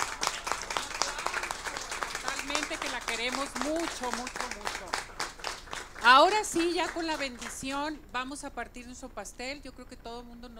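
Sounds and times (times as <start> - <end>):
audience applause: 0.0 - 7.7
speech: 2.8 - 5.1, 6.0 - 10.5.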